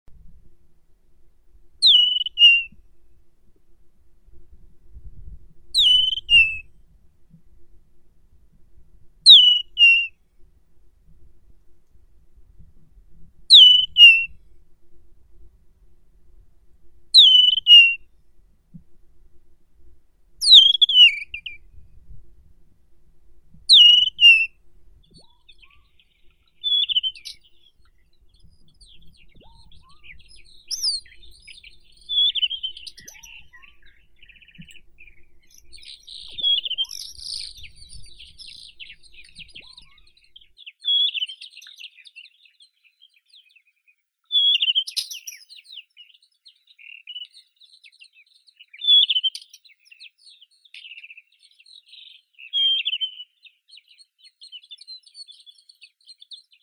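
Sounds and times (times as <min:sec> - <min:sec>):
desert wheatear Oenanthe deserti: 0:01.8 - 0:02.8, 0:05.8 - 0:06.7, 0:09.2 - 0:10.1, 0:13.5 - 0:14.4, 0:17.1 - 0:18.1, 0:20.4 - 0:21.7, 0:23.7 - 0:56.6.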